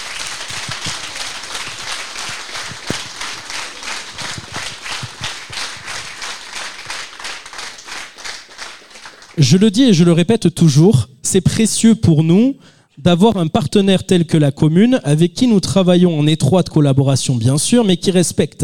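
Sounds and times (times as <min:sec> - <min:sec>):
audience applause: 0:00.0 - 0:09.4
speech: 0:09.4 - 0:18.6.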